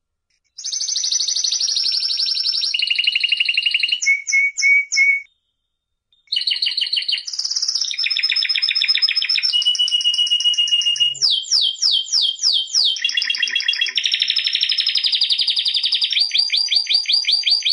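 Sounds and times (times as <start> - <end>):
canary singing: 0.6 - 5.3, 6.2 - 17.7.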